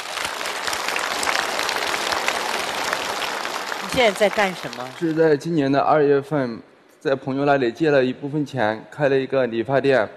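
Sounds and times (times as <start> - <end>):
audience applause: 0.0 - 5.4
speech: 4.0 - 10.1.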